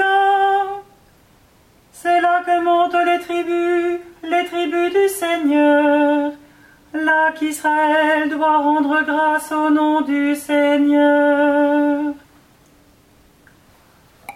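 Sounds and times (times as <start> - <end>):
alto singing a psalm: 0.0 - 1.0, 1.9 - 12.3.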